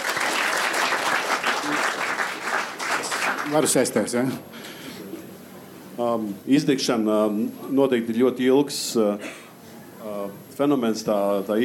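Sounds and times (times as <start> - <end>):
audience applause: 0.0 - 4.1
speech: 3.5 - 4.6, 6.0 - 9.4, 10.6 - 11.6.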